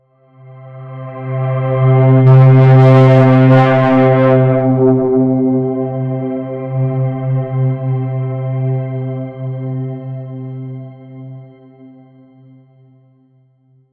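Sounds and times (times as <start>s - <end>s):
dark cinematic music: 1.8s - 8.7s.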